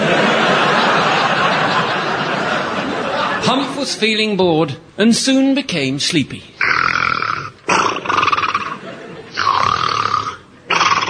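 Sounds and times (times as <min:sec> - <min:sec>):
laughter: 0:00.0 - 0:04.0, 0:08.6 - 0:09.4
speech: 0:03.8 - 0:06.5
snoring: 0:06.6 - 0:08.8, 0:09.4 - 0:11.0.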